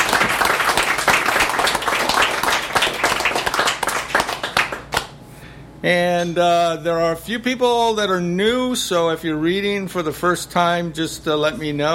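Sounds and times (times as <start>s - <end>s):
audience applause: 0.0s - 5.1s
speech: 5.8s - 11.9s.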